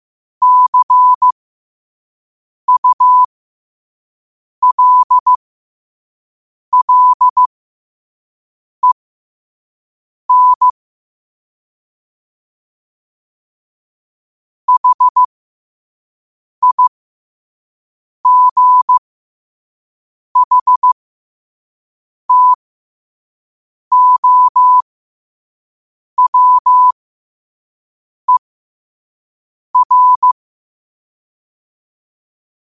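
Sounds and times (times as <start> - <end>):
morse code at 5 wpm: 0.4 - 1.4, 2.7 - 3.3, 4.6 - 5.4, 6.8 - 7.5, 10.3 - 10.8, 14.7 - 15.3, 16.6 - 16.9, 18.3 - 19.0, 20.4 - 21.0, 22.3 - 22.6, 23.9 - 24.8, 26.2 - 27.0, 29.8 - 30.4.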